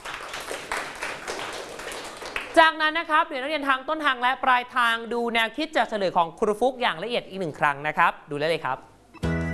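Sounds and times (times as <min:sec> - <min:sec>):
classmates clapping for a student in a math class: 0:00.0 - 0:02.6
speech: 0:02.6 - 0:08.9.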